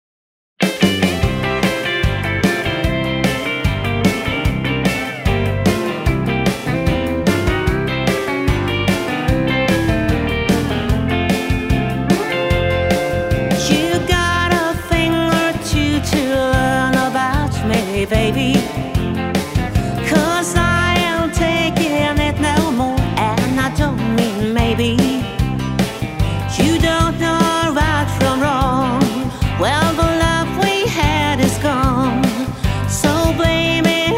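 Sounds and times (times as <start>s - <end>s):
country parlor music: 0.6s - 34.1s.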